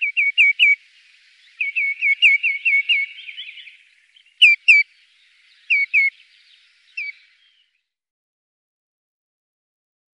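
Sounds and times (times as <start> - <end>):
Common greenshank clear, ringing, downslurred call notes: 0.0 - 0.8, 1.5 - 4.9, 5.6 - 7.4.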